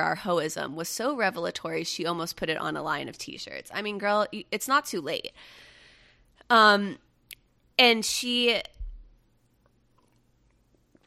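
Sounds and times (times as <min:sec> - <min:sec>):
speech: 0:00.0 - 0:05.7, 0:06.5 - 0:07.0, 0:07.8 - 0:08.8
sipping coffee: 0:09.6 - 0:11.0.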